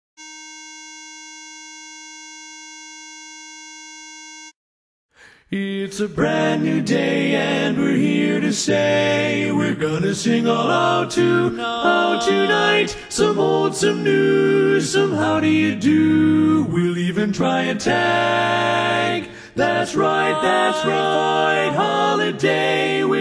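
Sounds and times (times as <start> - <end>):
tenor singing: 5.5 - 23.2.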